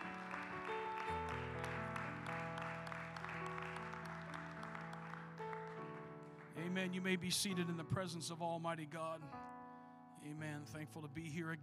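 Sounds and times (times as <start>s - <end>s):
crowd clapping: 0.0s - 7.0s
speech: 6.6s - 9.6s, 10.2s - 11.6s.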